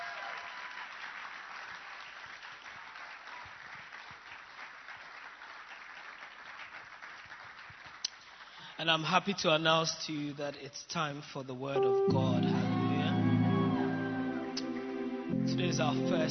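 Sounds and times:
audience hand clapping: 0.0 - 8.7, 12.2 - 16.3
speech: 8.8 - 12.6, 15.4 - 16.3.

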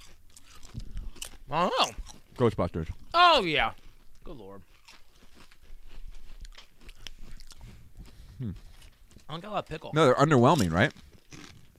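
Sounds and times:
kettle-cooked potato chips crunching: 0.0 - 9.4, 10.2 - 11.7
speech: 1.5 - 4.7, 8.4 - 8.7, 9.3 - 11.1
brief low voiced sound: 8.4 - 8.6.

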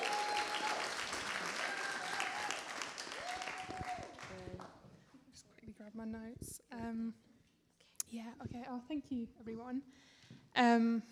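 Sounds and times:
audience applause: 0.0 - 4.7
speech: 6.0 - 7.3, 8.1 - 11.1.

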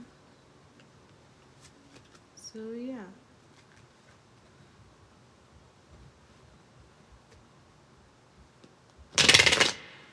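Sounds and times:
shuffling cards: 0.8 - 2.3, 3.4 - 4.5
speech: 2.6 - 3.2.

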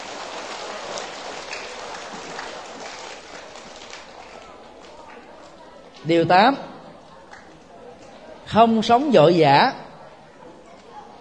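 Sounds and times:
loud applause: 0.0 - 5.2
speech: 6.0 - 6.7, 8.5 - 9.8.

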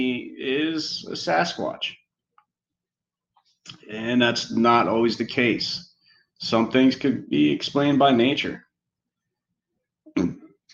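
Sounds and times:
speech: 0.0 - 2.0, 3.7 - 8.6
burp after drinking soda: 10.1 - 10.5.

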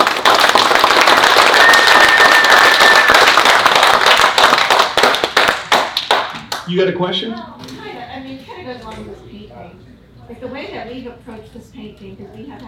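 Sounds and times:
audience applause: 0.0 - 6.3
speech: 6.7 - 7.6, 10.9 - 12.6.

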